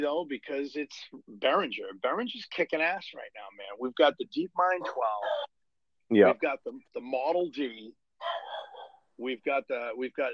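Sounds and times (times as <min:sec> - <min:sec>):
speech: 0:00.0 - 0:08.4, 0:09.2 - 0:10.3
dog barking: 0:04.8 - 0:05.6, 0:08.2 - 0:09.0.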